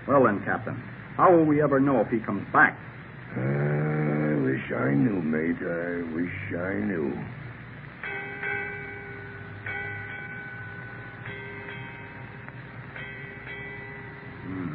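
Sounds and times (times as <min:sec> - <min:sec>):
speech: 0:00.1 - 0:03.6, 0:04.7 - 0:07.4
ship's bell striking eight bells: 0:08.0 - 0:14.7.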